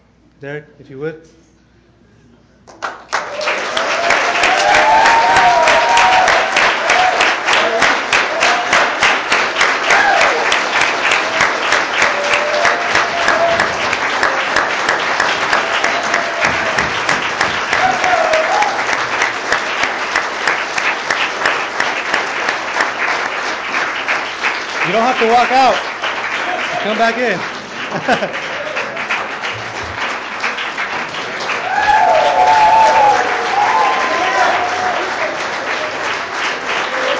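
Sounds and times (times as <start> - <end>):
speech: 0.4 - 1.6, 25.2 - 25.9, 26.8 - 28.6
audience clapping: 2.6 - 37.1
scattered whoops and cheers: 3.2 - 9.0, 9.8 - 14.5, 15.5 - 17.1, 17.7 - 19.0, 28.4 - 29.0, 31.5 - 36.0, 36.7 - 37.1
laughter: 27.7 - 29.1.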